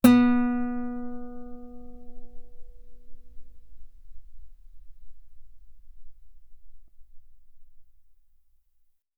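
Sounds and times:
guitar B3 note on B string played fortissimo: 0.0 - 6.9.

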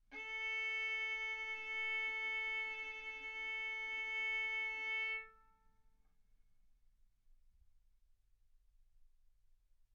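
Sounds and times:
violin bowed mezzo-forte on the A string, A4 and B4: 0.1 - 5.3.

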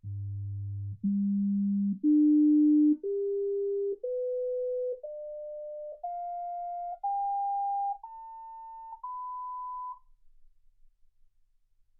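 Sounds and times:
sine tones: 0.0 - 10.1.

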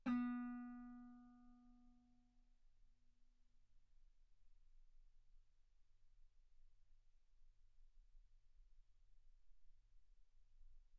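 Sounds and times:
guitar note B3: 0.0 - 1.4.

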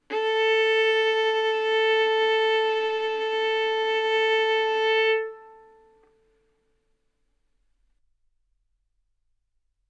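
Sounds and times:
violin arco on A string: 0.0 - 6.2.

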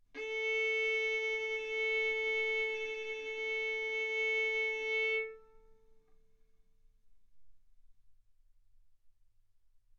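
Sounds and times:
violin arco on A string: 0.2 - 5.8.

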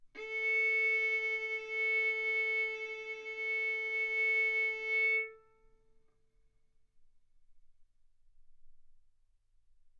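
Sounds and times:
violin arco on A string: 0.2 - 5.6.

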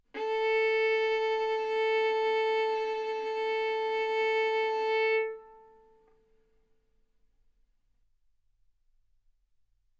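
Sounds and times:
violin bowed mezzo-forte on the A string, A4 and B4: 0.1 - 6.1.

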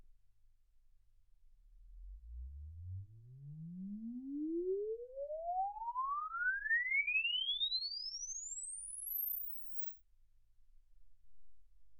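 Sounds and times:
exponential sine sweep from 10 Hz to 24 kHz: 2.0 - 9.9.

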